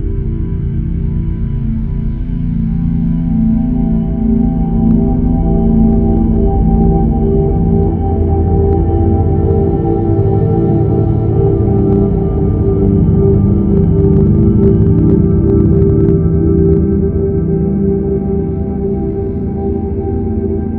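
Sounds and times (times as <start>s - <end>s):
relaxation music: 0.0s - 20.7s.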